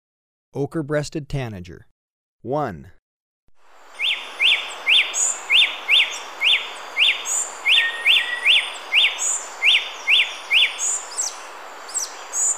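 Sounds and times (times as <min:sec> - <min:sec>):
ochre-breasted tanager calling in Ecuador: 0:03.8 - 0:12.5.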